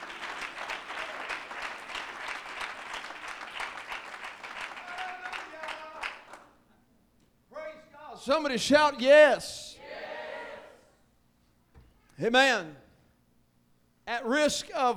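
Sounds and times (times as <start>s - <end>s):
audience hand clapping: 0.0s - 6.6s
speech: 8.2s - 9.6s, 12.2s - 12.8s, 14.1s - 14.9s.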